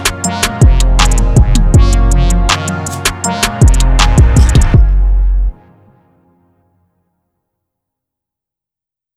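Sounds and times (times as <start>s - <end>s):
instrumental music: 0.0s - 7.0s.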